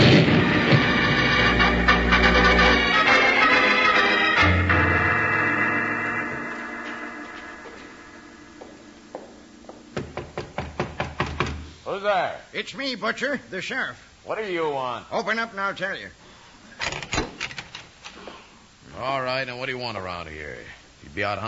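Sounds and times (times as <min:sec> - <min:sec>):
powder keg exploding in a tunnel: 0:00.0 - 0:01.8
dramatic music: 0:00.0 - 0:09.1
rapid sharp knocks: 0:10.0 - 0:11.7
speech: 0:12.6 - 0:16.2, 0:19.0 - 0:21.4.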